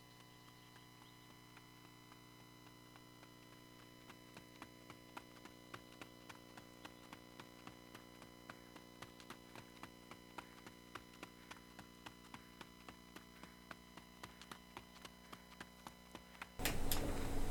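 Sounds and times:
horse galloping through a forest: 0.0 - 17.5.

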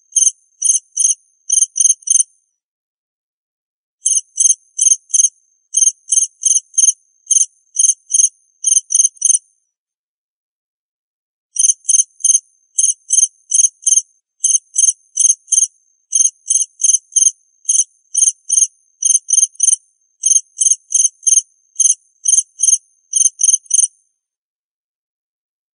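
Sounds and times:
cricket chirping: 0.0 - 2.3, 4.0 - 9.5, 11.6 - 24.0.

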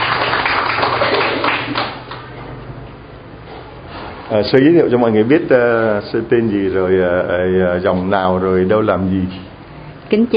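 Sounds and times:
church congregation applauding welcoming a nun forward to speak: 0.0 - 2.3
speech: 4.3 - 9.5, 10.1 - 10.3.

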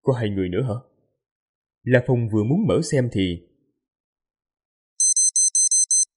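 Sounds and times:
speech: 0.0 - 0.9, 1.8 - 3.5
watch notification beeps: 5.0 - 6.1.

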